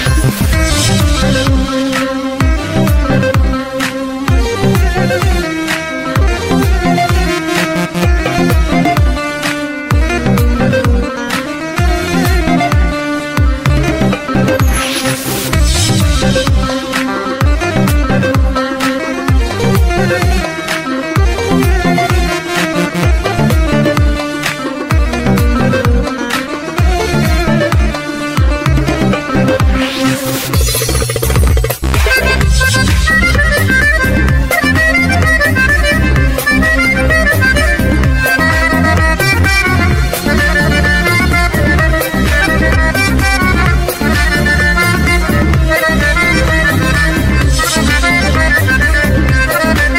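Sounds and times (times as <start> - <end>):
accordion: 0.0 - 49.9.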